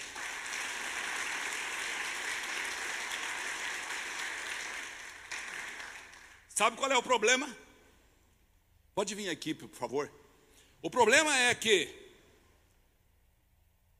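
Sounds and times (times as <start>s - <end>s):
audience applauding: 0.0s - 6.5s
speech: 6.6s - 7.7s, 9.0s - 10.2s, 10.8s - 12.0s.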